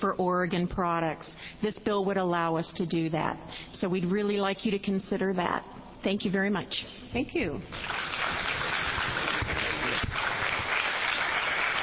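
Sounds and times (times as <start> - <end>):
speech: 0.0 - 8.5
audience applause: 7.7 - 11.8.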